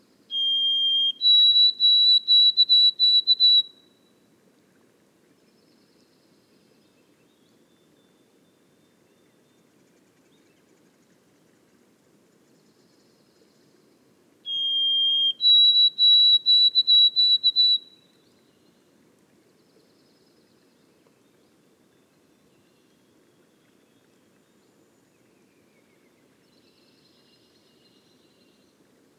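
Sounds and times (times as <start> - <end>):
White-throated sparrow whistled song in boreal forest: 0.3 - 4.0, 14.5 - 18.0.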